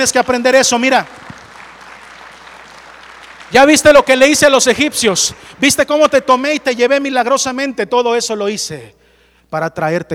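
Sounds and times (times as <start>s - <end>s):
speech: 0.0s - 1.3s, 3.5s - 10.1s
audience applauding: 0.0s - 6.2s.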